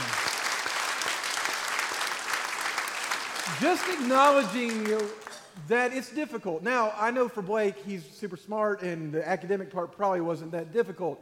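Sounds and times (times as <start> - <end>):
audience applause: 0.0 - 5.4
speech: 3.5 - 11.1.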